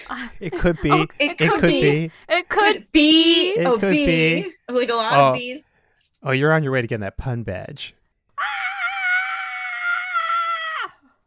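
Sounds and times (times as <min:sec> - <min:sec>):
laughter: 0:00.0 - 0:02.5
speech: 0:00.1 - 0:08.0
person screaming: 0:08.4 - 0:11.1.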